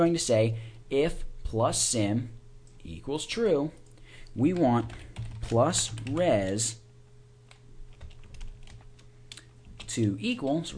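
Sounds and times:
speech: 0.0 - 3.8, 4.4 - 6.8, 9.9 - 10.7
low steady hum: 0.0 - 10.7
typing code on a computer keyboard: 4.5 - 6.7, 7.5 - 9.9.

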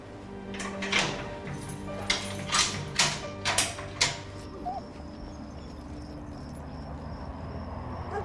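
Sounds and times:
faint tonal sounds: 0.0 - 8.1
door being closed with rattling latch knocks: 0.5 - 4.6.

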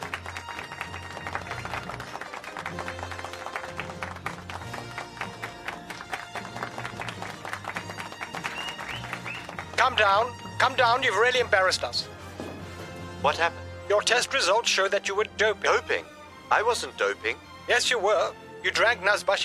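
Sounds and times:
audience applause for chess champion: 0.0 - 10.4
speech: 9.8 - 12.1, 13.2 - 19.4.

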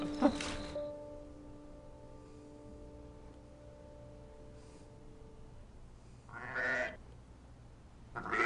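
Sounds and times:
low steady hum: 0.0 - 8.4
sheep or lamb bleating: 6.3 - 7.0, 8.2 - 8.4.

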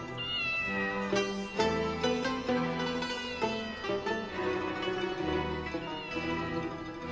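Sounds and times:
cat meowing: 0.2 - 2.3, 3.0 - 4.4, 5.4 - 6.9.

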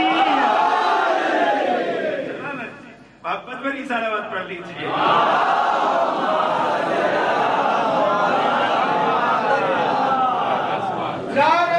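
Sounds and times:
crowd chanting a religious slogan in unison: 0.0 - 2.4, 4.8 - 11.0
speech: 3.3 - 5.6.

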